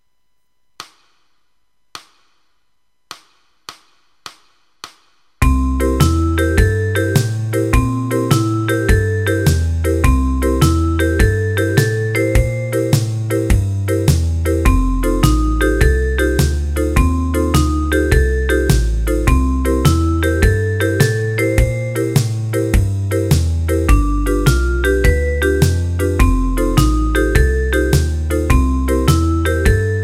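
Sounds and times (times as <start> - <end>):
boogie woogie music: 5.4 - 30.0.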